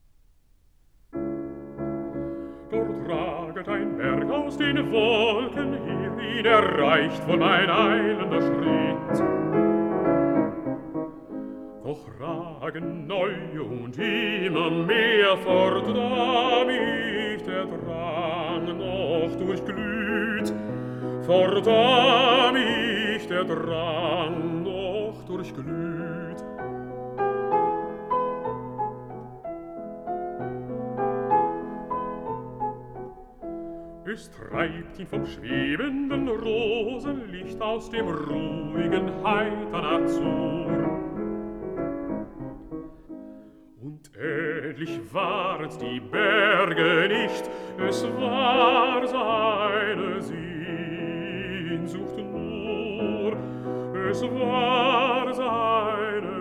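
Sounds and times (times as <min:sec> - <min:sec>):
piano: 0:00.0 - 0:56.3
person singing: 0:02.7 - 0:09.6, 0:11.8 - 0:26.7, 0:34.0 - 0:41.3, 0:43.8 - 0:56.3.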